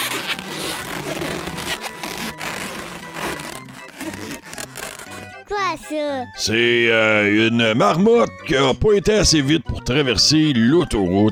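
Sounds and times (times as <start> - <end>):
balloons being twisted into animal shapes: 0.0 - 6.4
speech: 5.5 - 11.2.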